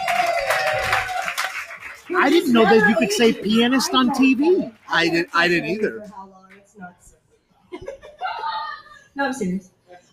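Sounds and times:
audience applause: 0:00.0 - 0:05.9
speech: 0:02.1 - 0:07.1, 0:09.2 - 0:09.8.

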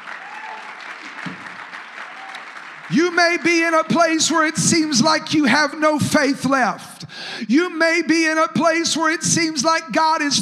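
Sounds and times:
audience clapping hands: 0:00.0 - 0:05.2
speech: 0:02.9 - 0:10.4.

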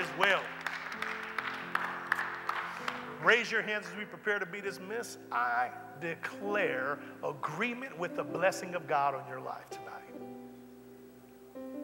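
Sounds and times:
crowd clapping: 0:00.0 - 0:03.4
sustained organ-like chords: 0:00.0 - 0:11.8
speech: 0:03.2 - 0:10.4.

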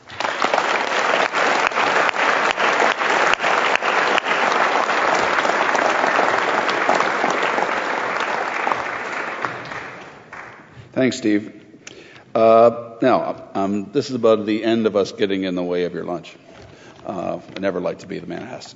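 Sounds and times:
audience applause: 0:00.0 - 0:10.8
speech: 0:11.0 - 0:11.6, 0:12.4 - 0:18.7.

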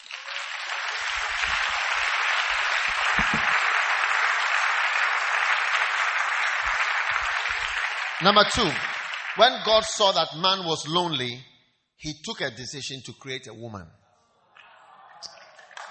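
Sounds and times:
audience applause: 0:00.0 - 0:10.1, 0:14.6 - 0:15.8
speech: 0:08.2 - 0:14.0.

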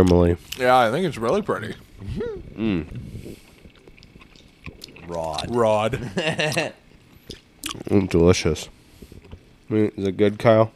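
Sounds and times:
speech: 0:00.0 - 0:03.1, 0:05.1 - 0:08.8, 0:09.7 - 0:10.7
person chewing caramel: 0:02.5 - 0:08.2.

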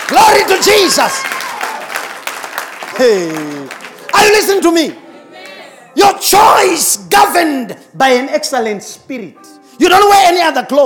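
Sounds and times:
crowd clapping: 0:00.0 - 0:05.6
speech: 0:00.1 - 0:01.4, 0:03.0 - 0:05.0, 0:06.0 - 0:10.8.

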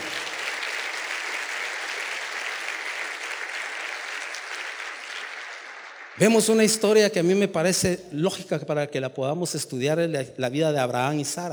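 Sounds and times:
audience applause: 0:00.0 - 0:06.9
speech: 0:06.2 - 0:11.5.

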